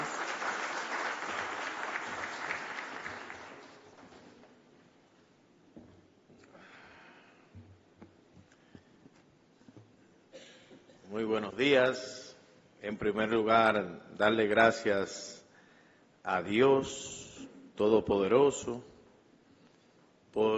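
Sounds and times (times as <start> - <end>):
audience applause: 0.0 - 4.3
speech: 11.1 - 12.2, 12.8 - 15.3, 16.3 - 17.2, 17.8 - 18.9, 20.4 - 20.5.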